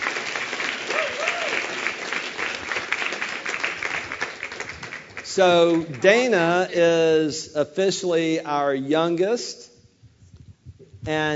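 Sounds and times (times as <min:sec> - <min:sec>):
audience applause: 0:00.0 - 0:06.1
speech: 0:05.4 - 0:09.7, 0:11.1 - 0:11.3.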